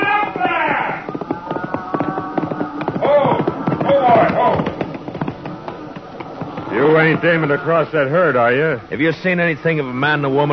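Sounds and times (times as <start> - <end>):
galloping hoofbeats of a rider's horse, audio drama sound effect: 0.0 - 7.7
speech: 7.1 - 10.5.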